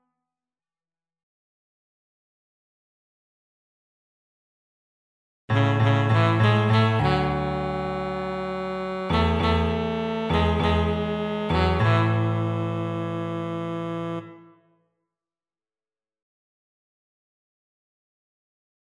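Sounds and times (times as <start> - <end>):
piano: 5.5 - 14.2
saxophone: 5.5 - 14.7.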